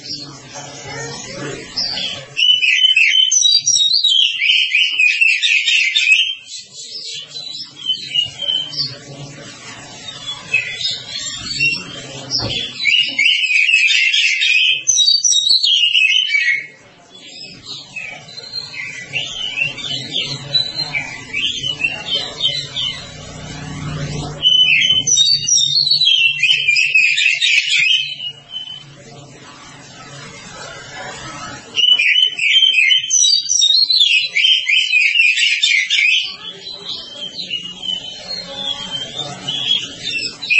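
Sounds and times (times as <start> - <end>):
Oriental magpie-robin whistles and trills: 0.8 - 9.0, 9.9 - 28.9, 31.8 - 40.5.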